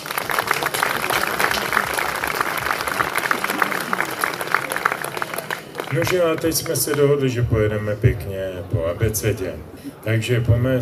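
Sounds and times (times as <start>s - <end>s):
audience applause: 0.0s - 7.2s
speech: 5.9s - 10.8s.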